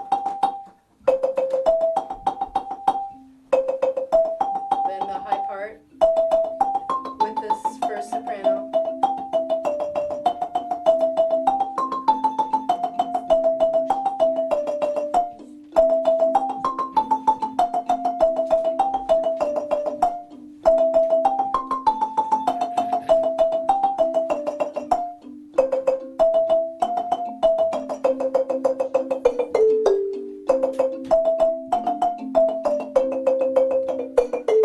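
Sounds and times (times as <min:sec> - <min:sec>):
lead marimba rolling: 0:00.0 - 0:34.6.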